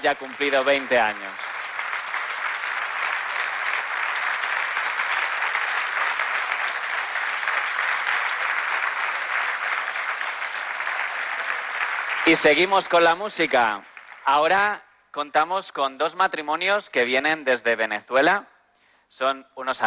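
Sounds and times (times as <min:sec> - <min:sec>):
speech: 0:00.0 - 0:01.4, 0:12.3 - 0:18.5, 0:19.1 - 0:19.8
large audience applause: 0:00.0 - 0:14.6.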